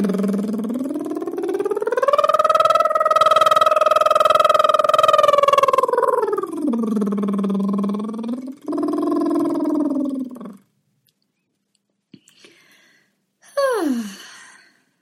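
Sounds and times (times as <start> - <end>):
voiced lip trill: 0.0 - 10.7.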